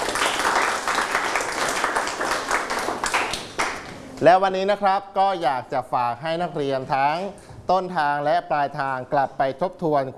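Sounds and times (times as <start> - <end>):
students applauding themselves: 0.0 - 4.0
speech: 4.2 - 10.1.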